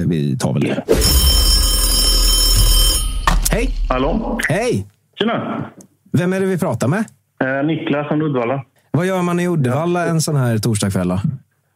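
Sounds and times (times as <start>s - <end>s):
speech: 0.0s - 1.3s, 3.5s - 11.4s
telephone ringing for an incoming call on a call-in show: 0.9s - 4.4s.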